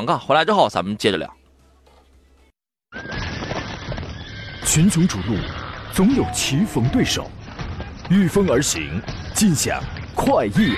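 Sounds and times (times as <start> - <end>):
speech: 0.0 - 1.4, 4.6 - 7.4, 8.1 - 10.7
horse neighing: 3.0 - 7.3, 10.5 - 10.7.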